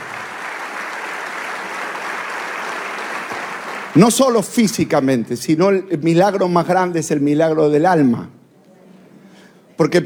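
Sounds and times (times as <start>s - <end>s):
audience applause: 0.0s - 4.3s
speech: 4.0s - 8.4s, 9.8s - 10.0s.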